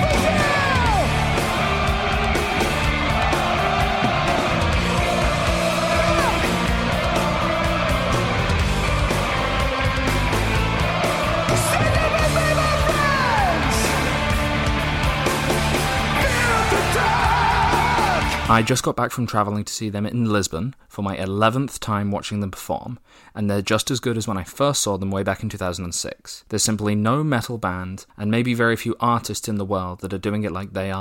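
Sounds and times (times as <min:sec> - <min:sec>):
metal concert crowd cheering and yelling: 0:00.0 - 0:18.7
speech: 0:18.6 - 0:30.9.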